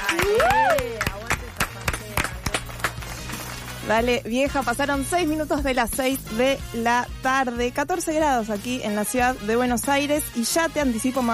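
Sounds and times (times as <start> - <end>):
cheer or whoop: 0.0 - 1.1
small group clapping live: 0.0 - 4.0
speech: 3.9 - 11.3.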